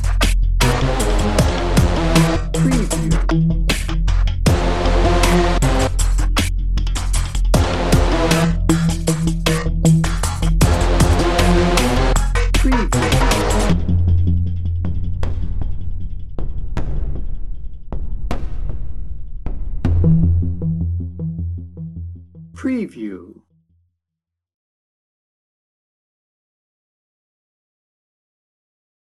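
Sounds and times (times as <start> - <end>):
drum and bass music: 0.0 - 23.2.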